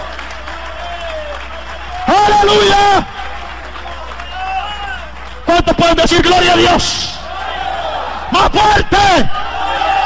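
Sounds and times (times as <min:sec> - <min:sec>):
applause: 0:00.0 - 0:07.5
speech: 0:05.5 - 0:07.1, 0:08.3 - 0:09.4.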